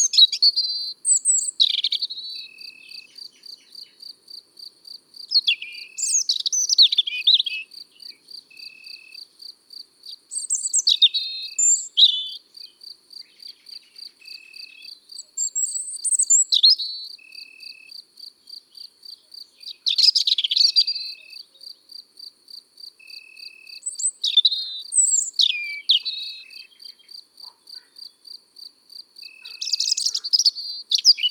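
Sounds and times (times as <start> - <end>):
European robin song: 0.0 - 4.1, 5.2 - 9.2, 10.0 - 21.9, 23.0 - 28.2, 29.2 - 31.3.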